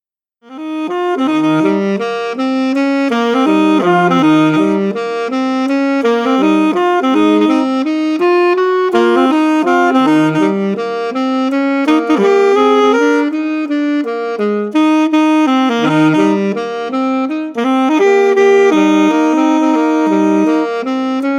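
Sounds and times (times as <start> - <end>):
saxophone: 0.4 - 21.3.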